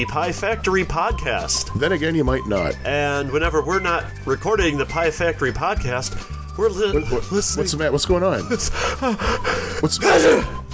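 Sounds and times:
speech: 0.0 - 10.7
person sneezing: 10.0 - 10.6.

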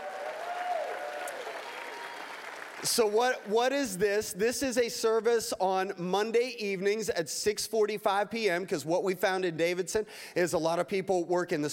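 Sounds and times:
audience cheering: 0.0 - 3.9
speech: 2.8 - 11.7.

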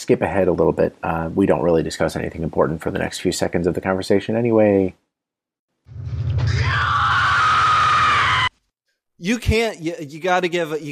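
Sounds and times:
speech: 0.1 - 5.0, 9.2 - 10.8
loud scream from a film: 6.4 - 8.6.

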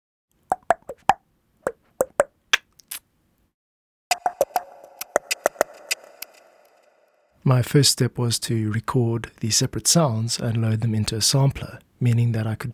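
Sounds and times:
rhythm of sampled Xhosa tongue clicks: 4.1 - 6.8
speech: 7.5 - 12.7.

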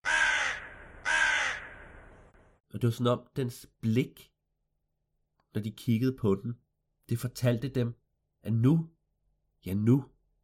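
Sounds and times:
crow cawing: 0.0 - 2.3
speech: 2.7 - 4.3, 5.5 - 9.0, 9.6 - 10.4.

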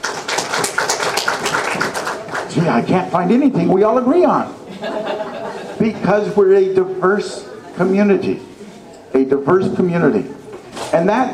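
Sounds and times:
audience applause: 0.0 - 2.7
speech: 2.6 - 8.5, 9.2 - 10.4, 11.0 - 11.3
laughter: 4.5 - 8.2, 9.9 - 10.8.

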